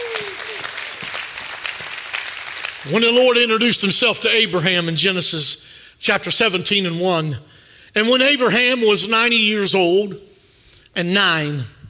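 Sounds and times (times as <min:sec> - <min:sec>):
audience shouting praise: 0:00.0 - 0:01.2
audience hand clapping: 0:00.0 - 0:03.6
speech: 0:02.8 - 0:10.3, 0:11.0 - 0:11.8.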